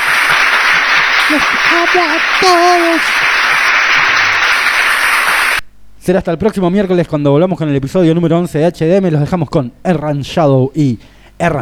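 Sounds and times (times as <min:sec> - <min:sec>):
audience applause: 0:00.0 - 0:05.6
speech: 0:01.3 - 0:03.3, 0:06.1 - 0:11.6.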